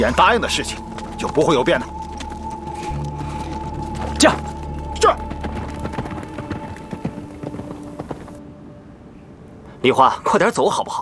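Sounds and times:
speech: 0:00.0 - 0:02.1, 0:09.8 - 0:10.9
horse hooves clip-clopping at a walking rhythm: 0:00.0 - 0:08.4.

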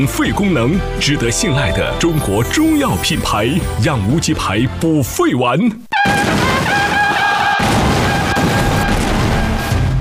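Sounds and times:
speech: 0:00.0 - 0:06.4
explosions from aerial bombing: 0:06.1 - 0:10.0.

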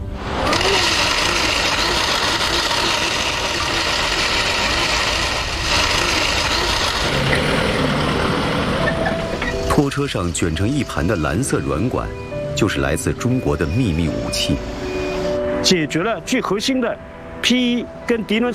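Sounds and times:
pipe cleaning machine with rotating chain: 0:00.2 - 0:09.5
speech: 0:09.9 - 0:14.8, 0:15.6 - 0:18.5.

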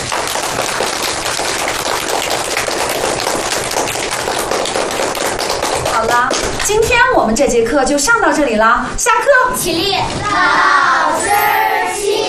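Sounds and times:
classroom applause: 0:00.0 - 0:06.7
speech: 0:06.6 - 0:12.0.

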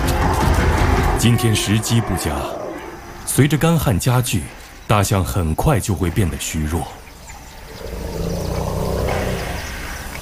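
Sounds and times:
lion roaring: 0:00.0 - 0:03.3, 0:07.6 - 0:09.8
speech: 0:01.2 - 0:02.6, 0:03.3 - 0:07.0.

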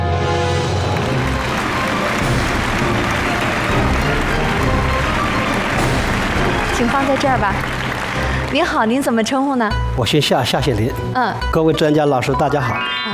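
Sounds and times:
audience applause: 0:00.6 - 0:09.3
speech: 0:06.8 - 0:07.8, 0:08.5 - 0:13.1.

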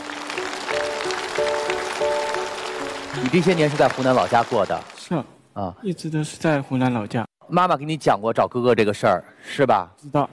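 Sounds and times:
audience applause: 0:00.0 - 0:05.1
speech: 0:03.2 - 0:10.3.

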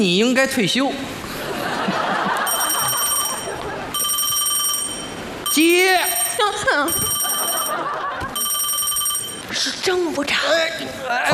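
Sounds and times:
speech: 0:00.0 - 0:01.3, 0:05.6 - 0:07.1, 0:09.5 - 0:11.3
laughter: 0:01.3 - 0:04.0, 0:06.4 - 0:08.4
electronic telephone ringtone for an incoming call: 0:02.4 - 0:09.5.

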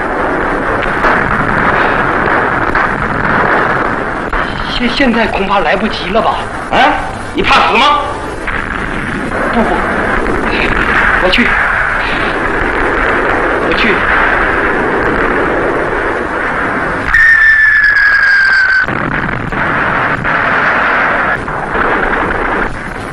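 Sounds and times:
artillery cannon fire: 0:00.0 - 0:23.1
speech: 0:04.8 - 0:08.1, 0:09.6 - 0:10.0, 0:10.6 - 0:11.6, 0:13.7 - 0:14.3
high whistling tone falling in pitch: 0:17.1 - 0:18.9.

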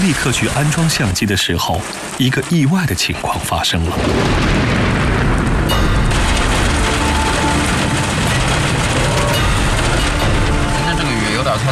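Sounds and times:
speech: 0:00.1 - 0:04.8
thunder: 0:04.0 - 0:11.6.

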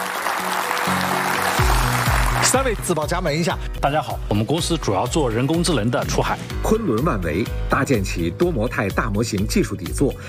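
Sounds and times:
studio audience applause welcoming three guests: 0:00.0 - 0:02.9
speech: 0:02.5 - 0:10.2.

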